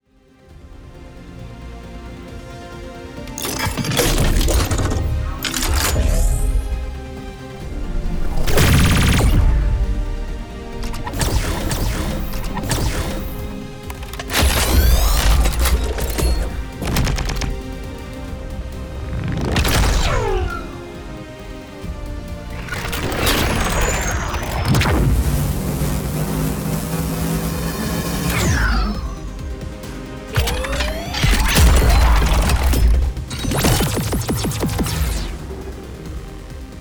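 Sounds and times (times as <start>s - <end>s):
sci-fi weapon sound design: 3.3s - 7.0s, 8.2s - 9.9s, 10.8s - 17.9s, 19.1s - 20.8s, 22.5s - 26.2s, 26.8s - 29.5s, 30.3s - 35.8s.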